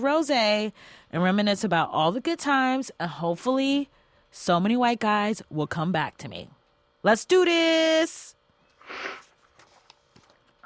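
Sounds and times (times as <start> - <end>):
speech: 0.0 - 9.2
wet sniffle: 8.8 - 9.4.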